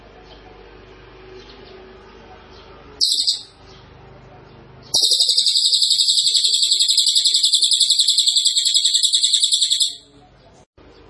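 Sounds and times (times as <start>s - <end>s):
small minivet song: 3.0s - 3.8s, 5.0s - 11.0s.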